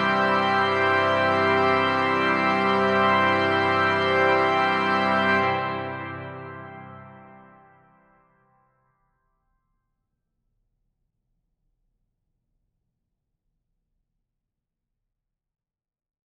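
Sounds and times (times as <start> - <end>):
organ toccata: 0.0 - 8.0.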